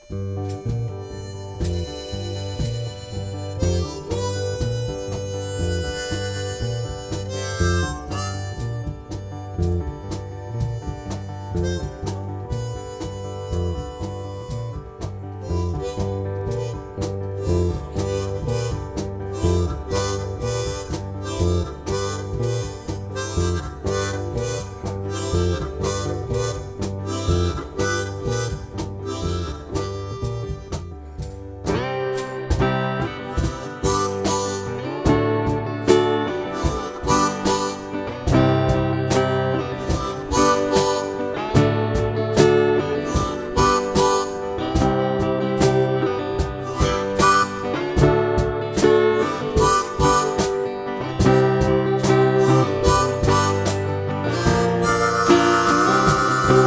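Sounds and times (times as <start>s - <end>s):
instrumental music: 0.0s - 56.6s.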